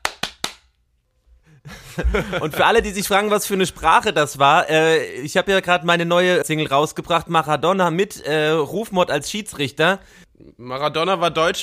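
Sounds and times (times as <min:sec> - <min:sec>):
single hand clap for sync: 0:00.0 - 0:00.7
laughter: 0:01.6 - 0:03.4
speech: 0:02.0 - 0:11.6.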